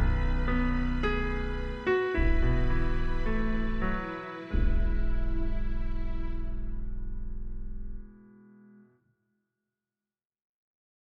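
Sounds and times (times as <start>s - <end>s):
backing music: 0.0s - 8.0s.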